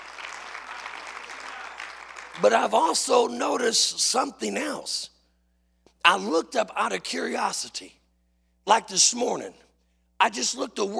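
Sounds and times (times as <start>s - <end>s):
audience hand clapping: 0.0s - 3.0s
speech: 2.4s - 5.1s, 6.0s - 8.0s, 8.7s - 9.6s, 10.2s - 10.9s.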